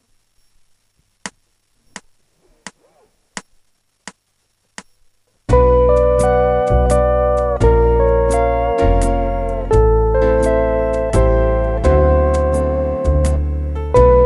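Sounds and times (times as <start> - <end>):
waltz music: 5.7 - 14.2.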